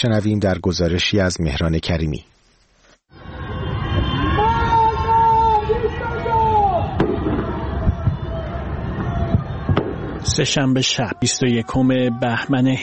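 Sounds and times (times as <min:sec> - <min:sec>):
speech: 0:00.0 - 0:02.3, 0:10.3 - 0:12.8
anti-government shouting from windows at night: 0:03.2 - 0:12.8
fireworks cracking and popping: 0:07.0 - 0:10.4.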